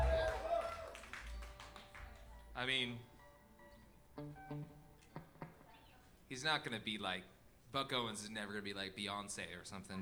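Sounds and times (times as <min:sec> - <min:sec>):
audience applause: 0:00.0 - 0:02.4
speech: 0:02.6 - 0:03.1, 0:04.2 - 0:04.8, 0:06.3 - 0:10.0.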